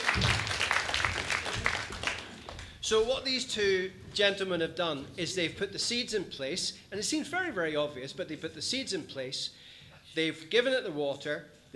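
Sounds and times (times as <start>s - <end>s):
small round of applause at a gardening demonstration: 0.0s - 2.8s
speech: 2.9s - 11.7s.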